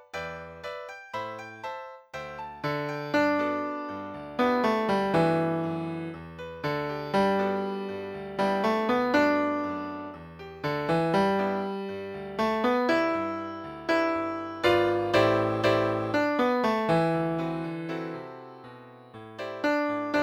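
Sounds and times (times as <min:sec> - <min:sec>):
tenor piano playing: 0:00.0 - 0:20.2.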